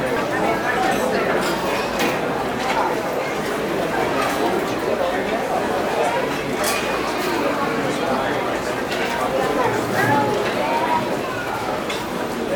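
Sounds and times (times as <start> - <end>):
busy deli restaurant ambience: 0.0 - 12.5.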